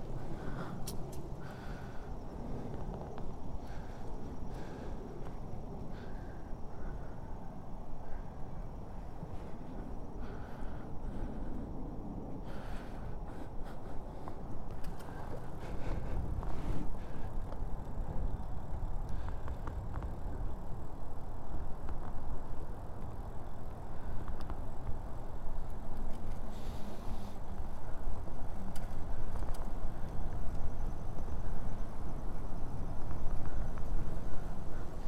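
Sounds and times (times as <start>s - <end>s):
bike ride from Orchard Beach to Mount Vernon: 0.0s - 35.0s.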